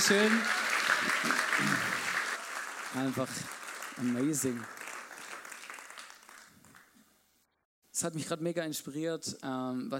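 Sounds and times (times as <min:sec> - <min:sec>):
audience applause: 0:00.0 - 0:06.9
speech: 0:00.1 - 0:01.8, 0:02.9 - 0:04.8, 0:08.0 - 0:09.9.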